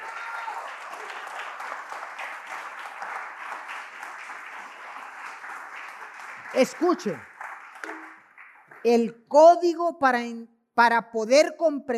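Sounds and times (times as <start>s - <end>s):
sustained applause from a large group: 0.0s - 8.9s
speech: 6.5s - 7.3s, 8.8s - 11.9s.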